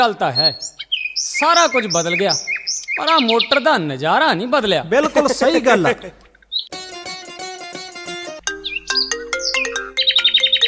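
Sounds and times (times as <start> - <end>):
speech: 0.0 - 6.2
mobile phone ringtone of an incoming call: 8.0 - 10.6.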